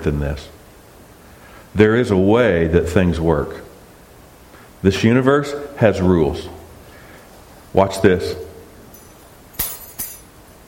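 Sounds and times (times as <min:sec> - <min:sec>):
speech: 0:00.0 - 0:00.6, 0:01.8 - 0:03.7, 0:04.8 - 0:06.6, 0:07.7 - 0:08.5
keys dropped onto the ground: 0:08.9 - 0:10.3.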